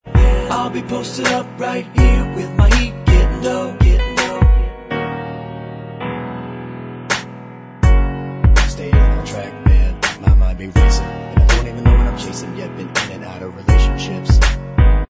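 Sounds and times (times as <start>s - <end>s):
backing vocals track: 0.1s - 4.7s, 8.6s - 14.5s.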